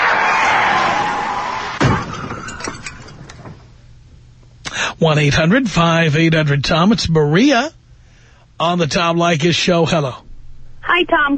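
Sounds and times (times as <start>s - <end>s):
rushing roar of a car wreck sound effect: 0.0s - 1.9s
loud crunching car wreck impact: 0.4s - 3.7s
scattered clanks and rattling debris: 1.8s - 3.7s
speech: 5.0s - 7.8s, 8.6s - 10.2s, 11.0s - 11.3s.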